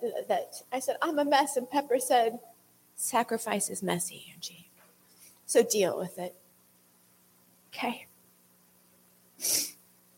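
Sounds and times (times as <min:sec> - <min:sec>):
speech: 0:00.0 - 0:04.7, 0:05.5 - 0:06.4, 0:07.7 - 0:08.1, 0:09.4 - 0:09.7
faint low hum: 0:00.0 - 0:10.1
nose sniffle: 0:09.4 - 0:09.8.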